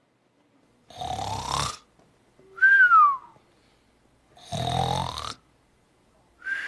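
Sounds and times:
person snoring while asleep: 0.9s - 1.9s, 4.4s - 5.4s.

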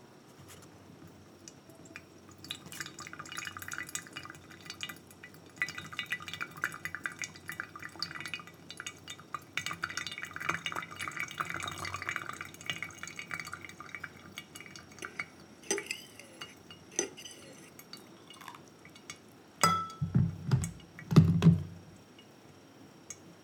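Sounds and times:
water pouring for hand-brewed coffee: 1.8s - 19.3s
knocks and clatter of kettle or cup: 1.9s - 21.7s
light glassy taps: 15.0s - 21.6s.

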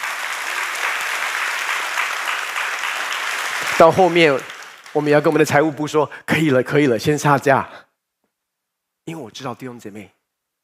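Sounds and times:
audience applauding: 0.0s - 6.0s
speech: 3.8s - 7.8s, 9.1s - 10.2s.

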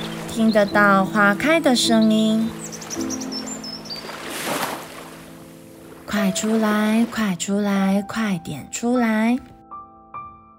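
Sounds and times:
birds chirping: 0.0s - 7.2s
wind: 0.0s - 7.2s
ocean waves: 0.0s - 7.8s
speech: 0.4s - 3.3s, 6.2s - 9.5s.

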